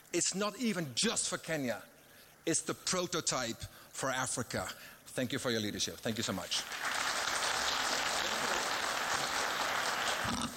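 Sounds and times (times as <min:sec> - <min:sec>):
speech: 0:00.1 - 0:07.0
audience applause: 0:06.6 - 0:10.5.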